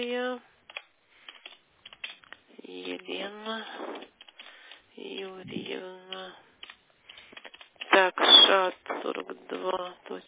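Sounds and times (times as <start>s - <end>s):
speech: 0.0s - 0.5s, 3.0s - 4.1s, 5.0s - 6.4s, 8.0s - 10.2s
keyboard typing for an appointment booking: 0.7s - 2.4s, 3.4s - 9.4s.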